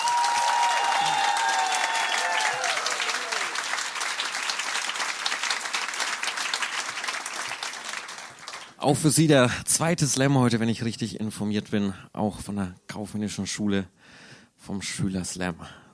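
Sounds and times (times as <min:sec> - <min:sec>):
audience applause: 0:00.0 - 0:08.8
speech: 0:08.8 - 0:15.8.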